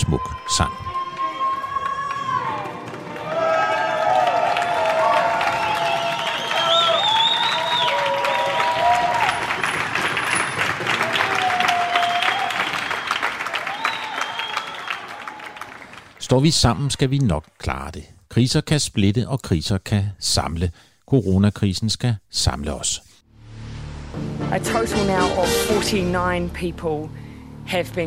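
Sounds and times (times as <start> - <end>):
speech: 0.0 - 0.8, 16.3 - 23.1, 24.1 - 28.0
whole street in Italy bursting into applause: 0.8 - 16.2
high whistles: 5.6 - 8.8, 11.7 - 15.2.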